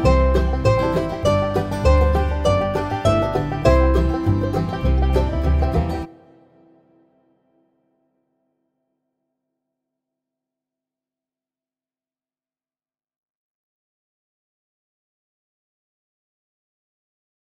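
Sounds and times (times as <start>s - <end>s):
mandolin: 0.0s - 7.2s.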